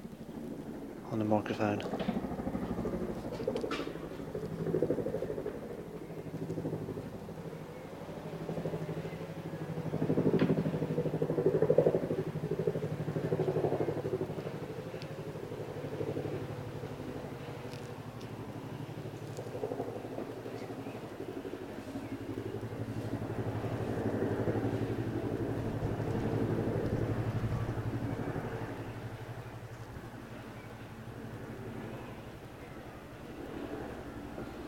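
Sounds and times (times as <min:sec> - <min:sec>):
twin-rotor Chinook helicopter flying over: 0:00.0 - 0:34.6
speech: 0:01.1 - 0:02.2.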